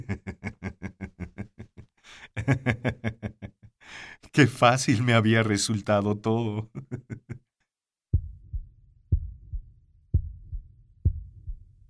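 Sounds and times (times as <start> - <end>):
laughter: 0.0 - 3.7, 6.6 - 7.4
speech: 2.2 - 3.4, 4.4 - 6.8
muffled heartbeat: 8.2 - 11.8.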